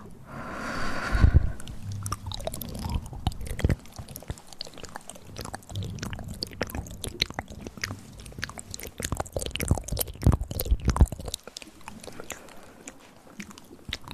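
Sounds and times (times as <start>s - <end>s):
short airy breath: 0.0s - 2.0s
crisp crackling clicks and soft taps: 2.0s - 14.1s.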